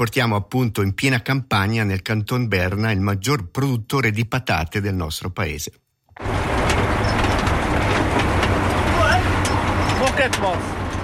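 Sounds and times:
speech: 0:00.0 - 0:06.3, 0:10.2 - 0:10.8
tractor slowly pulling a potato harvester: 0:06.2 - 0:11.0.

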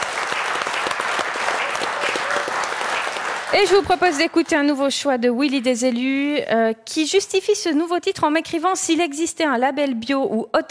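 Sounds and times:
audience applause: 0:00.0 - 0:04.6
speech: 0:03.5 - 0:10.6.

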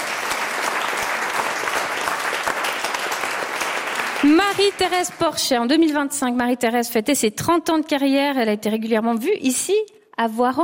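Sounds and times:
audience applause: 0:00.0 - 0:05.2
speech: 0:04.2 - 0:10.6.

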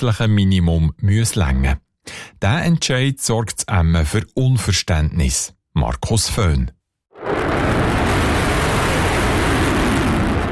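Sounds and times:
speech: 0:00.0 - 0:07.7
F-35 fighter jet taking off: 0:07.2 - 0:10.5.

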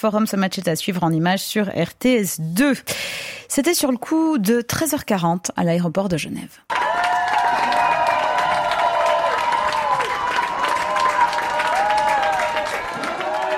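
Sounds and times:
speech: 0:00.0 - 0:06.8
intense applause and cheering at airport arrivals: 0:06.7 - 0:13.5.

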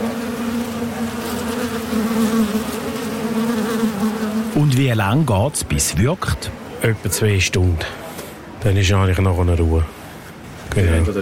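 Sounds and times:
wasps buzzing around their nest: 0:00.0 - 0:04.8
speech: 0:04.9 - 0:08.0, 0:08.6 - 0:10.0, 0:10.8 - 0:11.2.

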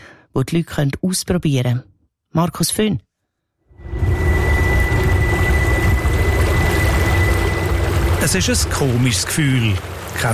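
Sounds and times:
speech: 0:00.4 - 0:03.1, 0:08.2 - 0:10.3
waves slapping against a small boat's bow: 0:05.0 - 0:10.3.

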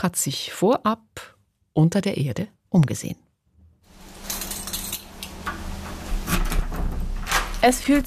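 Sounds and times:
speech: 0:00.0 - 0:03.2, 0:07.6 - 0:08.0
heavy airlock door pushed open: 0:05.3 - 0:07.8.

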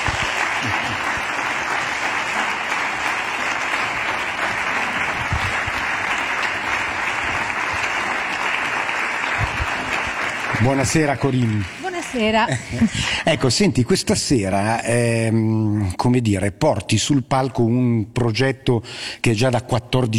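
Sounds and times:
audience applause: 0:00.0 - 0:12.6
speech: 0:10.6 - 0:20.1.

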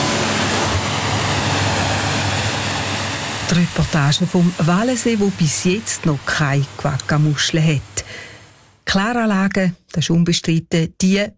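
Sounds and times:
spraying down a motorboat: 0:00.0 - 0:08.5
speech: 0:03.5 - 0:08.2, 0:08.9 - 0:11.3.

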